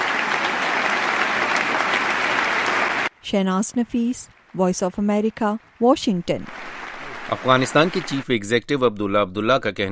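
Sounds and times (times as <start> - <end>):
applause by US lawmakers during President Ashraf Ghani's address: 0.0 - 3.1, 5.3 - 8.4
speech: 3.3 - 6.7, 7.3 - 9.9.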